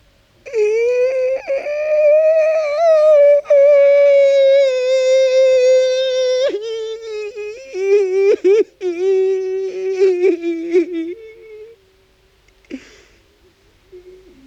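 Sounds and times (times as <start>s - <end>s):
weeping man wailing and sobbing: 0.5s - 11.8s.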